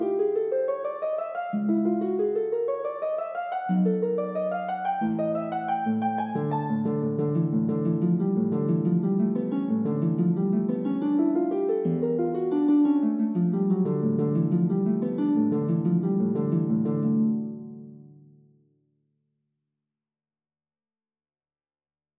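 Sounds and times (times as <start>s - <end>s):
lute playing a gigue: 0.0s - 17.6s.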